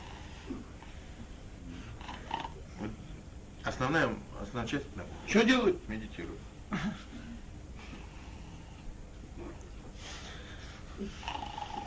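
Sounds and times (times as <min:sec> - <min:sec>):
voice imitating snoring: 0:02.0 - 0:03.0, 0:11.0 - 0:11.8
speech: 0:03.7 - 0:07.1.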